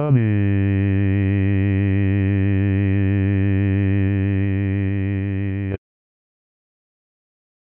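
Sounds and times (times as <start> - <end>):
bass solo: 0.2 - 5.8.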